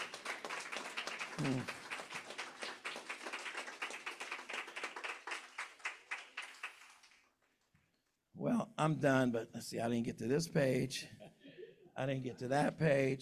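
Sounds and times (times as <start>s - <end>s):
audience hand clapping: 0.0s - 7.7s
speech: 1.4s - 1.8s, 8.8s - 11.2s, 12.0s - 13.2s.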